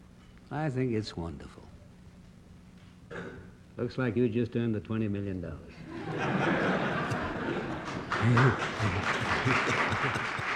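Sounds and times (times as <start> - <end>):
speech: 0.5 - 1.7, 3.1 - 6.8, 7.5 - 10.5
laughter: 5.8 - 10.5
Senate room erupting in applause: 6.9 - 10.5.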